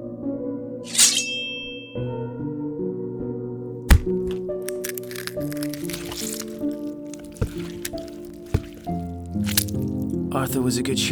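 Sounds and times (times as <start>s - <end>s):
sustained tonal music: 0.0s - 11.1s
speech: 2.0s - 2.5s, 10.4s - 11.1s
axe blow striking a head in an audio drama: 3.9s - 10.2s
smaller cracks and squelches: 3.9s - 10.3s.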